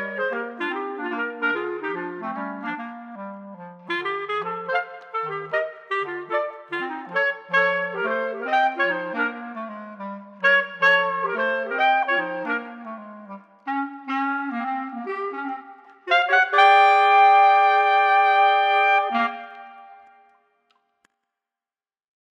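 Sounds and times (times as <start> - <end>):
boogie woogie clarinet trio: 0.0 - 20.1.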